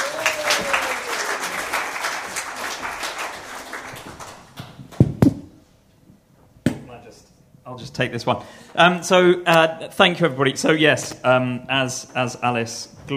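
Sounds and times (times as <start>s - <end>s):
audience applause: 0.0s - 4.6s
speech: 7.8s - 13.1s.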